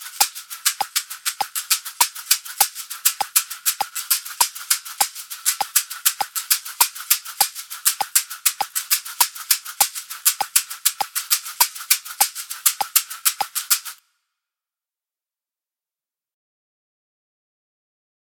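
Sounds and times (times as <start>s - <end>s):
two identical caxixi shakers shaking: 0.0s - 14.0s.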